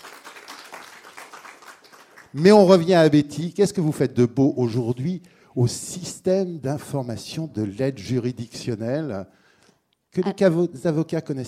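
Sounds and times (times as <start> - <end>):
crowd applause: 0.0 - 2.3
speech: 2.3 - 9.4, 10.1 - 11.4.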